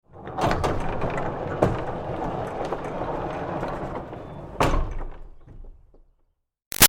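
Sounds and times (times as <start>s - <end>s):
barn door rolling in a long roll: 0.0s - 6.2s.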